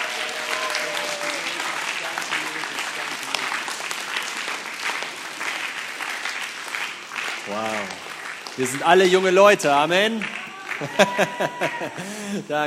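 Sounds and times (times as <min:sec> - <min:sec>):
faint voices and cheers: 0:00.0 - 0:03.6, 0:07.4 - 0:08.0, 0:08.6 - 0:12.0
audience applause: 0:00.0 - 0:12.6
speech: 0:07.5 - 0:08.0, 0:08.6 - 0:12.6
laughter: 0:10.5 - 0:12.6.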